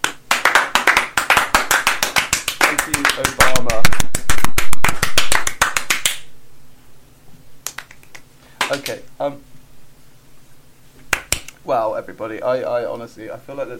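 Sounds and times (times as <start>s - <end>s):
audience clapping: 0.0s - 6.3s, 7.6s - 9.0s, 11.1s - 11.5s
speech: 2.9s - 4.2s, 8.7s - 9.6s, 11.6s - 13.7s.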